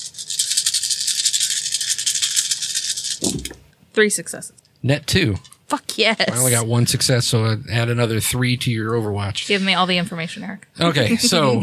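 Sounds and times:
handful of dice rattling and clattering: 0.0 - 3.6
speech: 4.0 - 11.6
laughter: 6.3 - 6.7, 10.9 - 11.6.

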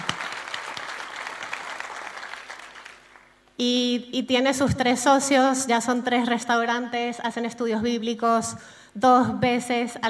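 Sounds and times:
audience applause: 0.0 - 3.3
speech: 3.6 - 10.0.

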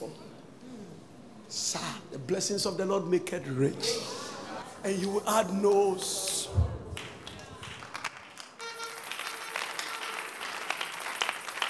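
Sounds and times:
speech: 1.5 - 4.2, 4.8 - 6.8
audience clapping: 4.9 - 11.6.

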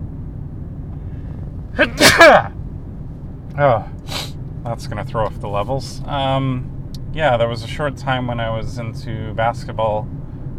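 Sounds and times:
person sneezing: 1.8 - 2.5, 4.1 - 4.4
speech: 1.8 - 2.6, 3.6 - 4.0, 4.6 - 10.2.

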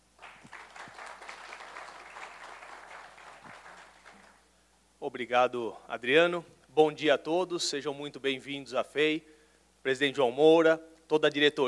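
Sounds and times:
audience applause: 0.2 - 4.4
speech: 5.0 - 11.6.

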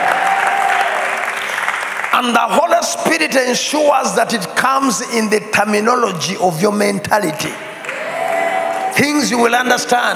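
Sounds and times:
audience clapping: 0.0 - 2.6, 7.8 - 9.0
speech: 2.2 - 7.6, 9.0 - 10.1.

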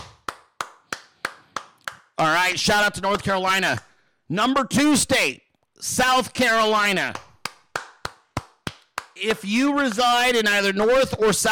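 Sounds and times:
hand claps: 0.0 - 2.2, 3.1 - 3.9, 7.1 - 11.5
speech: 2.2 - 7.2, 9.2 - 11.5.

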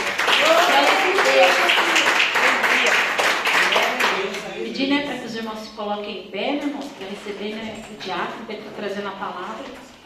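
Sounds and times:
audience clapping hands: 0.0 - 4.7
speech: 5.5 - 10.0.

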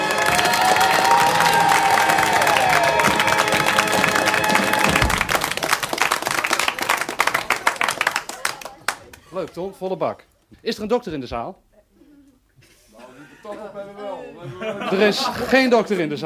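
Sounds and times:
audience applause: 0.0 - 9.5
speech: 9.5 - 11.7, 13.2 - 16.2
laughter: 12.6 - 16.2.

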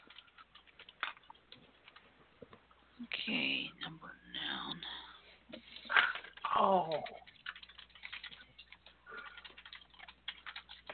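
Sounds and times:
fast typing on a computer keyboard: 0.0 - 2.1, 5.8 - 10.9
speech: 3.0 - 7.2.

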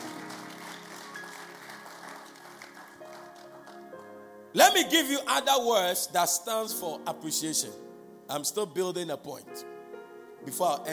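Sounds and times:
audience clapping: 0.0 - 4.1
speech: 4.6 - 9.7, 10.4 - 10.9.

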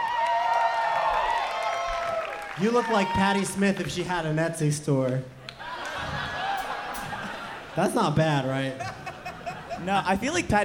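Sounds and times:
clapping: 0.0 - 2.6
speech: 2.6 - 5.4, 7.8 - 9.0, 9.8 - 10.6
laughter: 5.5 - 10.6.

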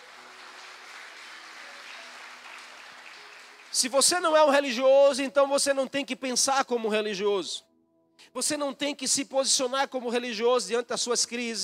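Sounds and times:
audience applauding: 0.0 - 4.4
speech: 3.7 - 7.7, 8.4 - 11.6.

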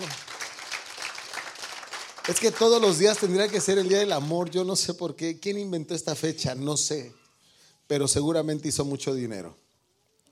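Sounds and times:
crowd applause: 0.0 - 4.5
speech: 2.3 - 7.2, 7.9 - 9.6.

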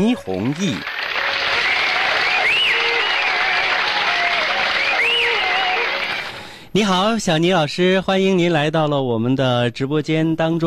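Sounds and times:
speech: 0.0 - 0.9, 6.8 - 10.6
audience applause: 0.2 - 6.5.

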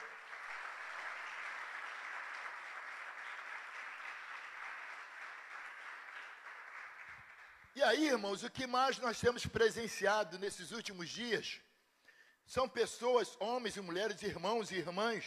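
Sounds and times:
audience applauding: 0.0 - 7.8
speech: 7.8 - 11.7, 12.5 - 15.2.

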